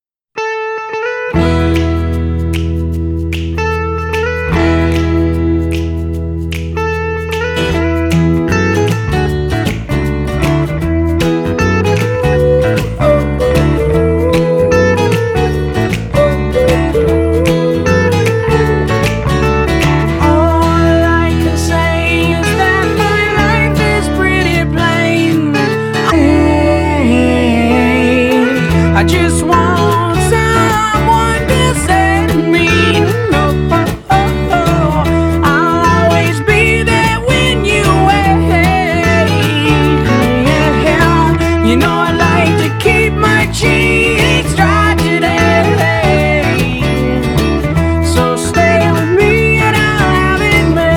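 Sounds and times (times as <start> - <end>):
acoustic music: 0.4 - 50.9.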